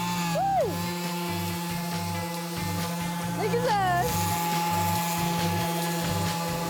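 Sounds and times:
power sander sanding a wooden door: 0.0s - 6.6s
speech: 3.4s - 4.2s.

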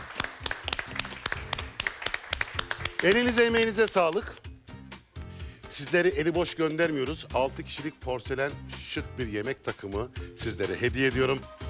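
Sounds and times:
studio audience applauding the winner of a game show: 0.0s - 4.5s
speech: 3.0s - 4.4s, 5.7s - 11.6s.

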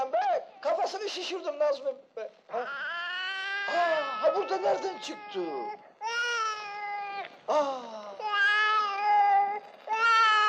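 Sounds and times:
speech: 0.9s - 3.0s, 3.7s - 5.9s, 7.5s - 8.0s
baby crying: 2.5s - 10.4s.

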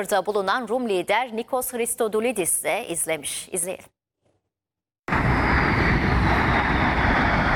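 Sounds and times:
speech: 0.0s - 4.0s
Turkish Stars aerobatic jets flying over the Egyptian pyramids: 5.1s - 7.5s.

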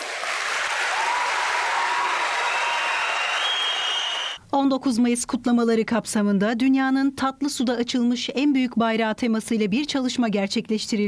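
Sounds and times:
crowd in a hall in Bolu applauding JAK commando teams: 0.0s - 4.4s
speech: 4.6s - 11.0s.

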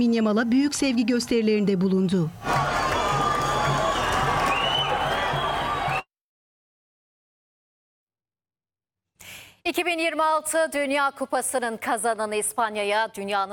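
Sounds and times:
speech: 0.0s - 2.6s, 9.9s - 13.5s
crowd of Palestinians cheering Spain's World Cup championship win: 0.4s - 6.1s.

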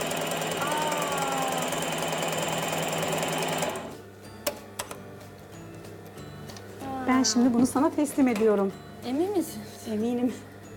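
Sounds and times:
sewing machine stitching knitwear: 0.0s - 4.0s
speech: 7.2s - 10.5s.

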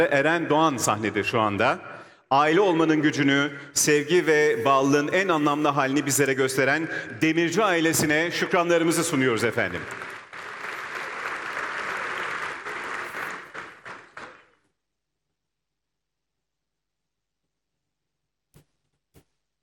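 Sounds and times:
speech: 0.0s - 10.2s
audience clapping for an award-winning family on stage: 9.4s - 14.7s.

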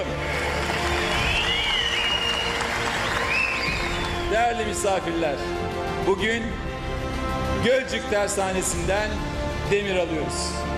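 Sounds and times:
audience applause: 0.0s - 4.6s
faint whistles or cheers: 0.1s - 4.8s
speech: 4.3s - 6.7s, 7.6s - 10.7s.

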